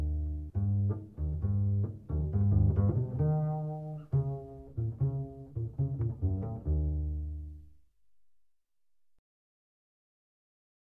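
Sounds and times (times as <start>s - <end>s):
double bass: 0.0s - 7.8s.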